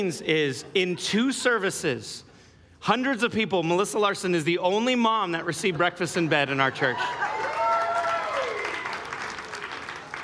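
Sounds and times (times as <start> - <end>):
speech: 0.0 - 7.4
audience clapping: 7.2 - 10.2.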